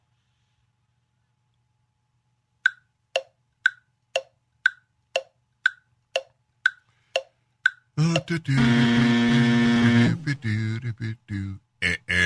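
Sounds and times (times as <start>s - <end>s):
quiz countdown ticking: 2.6s - 10.4s
loud harsh quiz buzzer: 8.0s - 10.8s
person talking: 8.0s - 12.2s.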